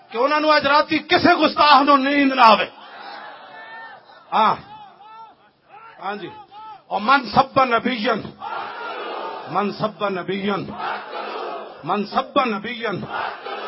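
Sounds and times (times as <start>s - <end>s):
speech: 0.1s - 2.8s, 4.3s - 4.7s, 6.0s - 8.6s, 9.5s - 11.2s, 11.8s - 13.5s
crowd at a religious gathering chanting a slogan: 2.7s - 5.4s, 8.4s - 9.7s, 10.7s - 11.9s, 13.0s - 13.6s.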